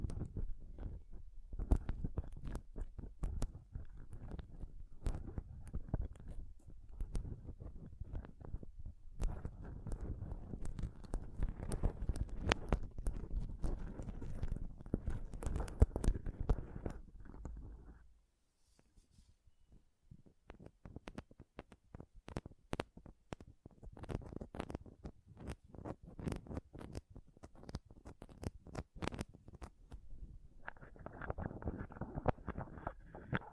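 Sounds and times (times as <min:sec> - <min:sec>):
close-up mic scratching and tapping: 0:00.0 - 0:18.1, 0:20.2 - 0:33.5.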